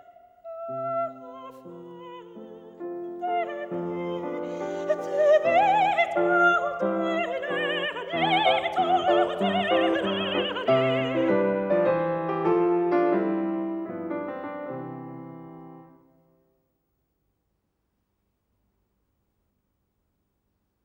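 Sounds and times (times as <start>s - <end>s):
person singing: 0.0s - 11.9s
piano: 0.0s - 16.5s.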